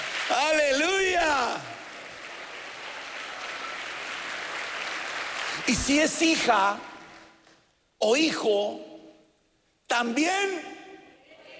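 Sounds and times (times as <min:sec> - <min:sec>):
audience applause: 0:00.0 - 0:05.9
speech: 0:05.7 - 0:06.9, 0:08.0 - 0:08.9, 0:09.9 - 0:10.8.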